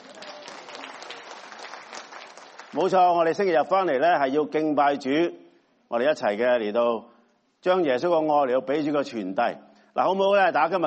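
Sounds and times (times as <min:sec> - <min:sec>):
church congregation applauding two worship singers: 0:00.0 - 0:03.4
speech: 0:02.7 - 0:10.8.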